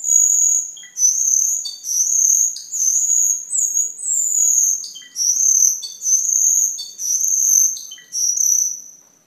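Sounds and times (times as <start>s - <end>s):
hill myna clicks, rasps and ringing high whistles: 0.0s - 9.0s.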